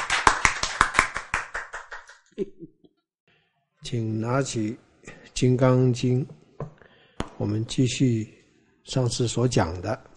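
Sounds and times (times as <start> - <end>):
hand clapping: 0.0 - 2.3
speech: 2.4 - 2.8, 3.8 - 6.4, 7.4 - 10.1.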